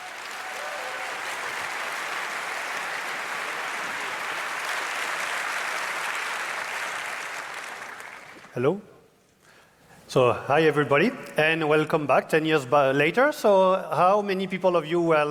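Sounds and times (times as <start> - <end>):
large audience applause: 0.0 - 8.5
speech: 8.6 - 8.9, 10.1 - 15.2.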